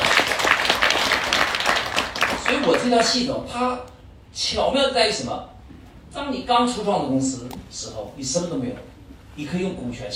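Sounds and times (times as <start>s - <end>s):
audience applause: 0.0s - 3.1s
speech: 2.8s - 5.5s, 6.1s - 10.1s.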